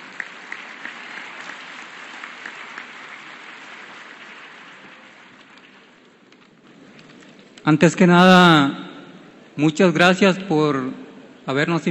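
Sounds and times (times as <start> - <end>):
audience applause: 0.0 - 6.0
speech: 7.7 - 8.8, 9.6 - 11.8.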